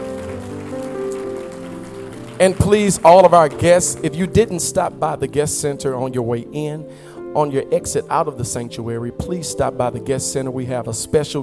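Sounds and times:
crowd clapping: 0.0 - 4.9
keyboard or organ chords: 0.0 - 11.4
speech: 2.4 - 11.4.

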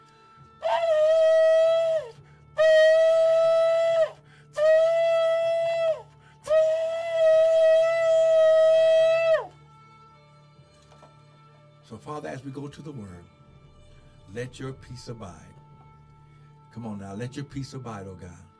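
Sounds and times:
shofar blasts: 0.0 - 9.6
speech: 12.4 - 13.4, 14.3 - 15.6, 16.8 - 18.5.

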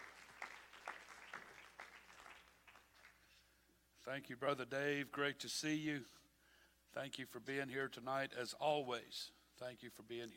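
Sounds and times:
audience clapping hands: 0.0 - 3.4
speech: 4.0 - 6.2, 6.9 - 10.3.

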